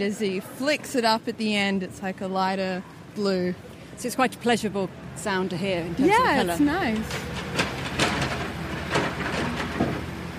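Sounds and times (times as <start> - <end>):
speech: 0.0 - 7.6
truck engine rumble: 1.9 - 10.3
clanks and bangs of workmen loading rubbish onto a truck: 6.9 - 10.1.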